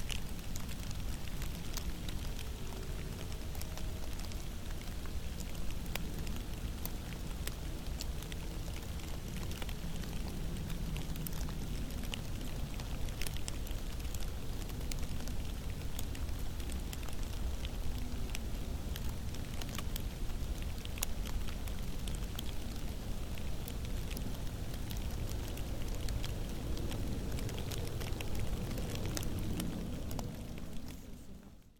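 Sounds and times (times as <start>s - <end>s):
rain: 0.0s - 31.7s.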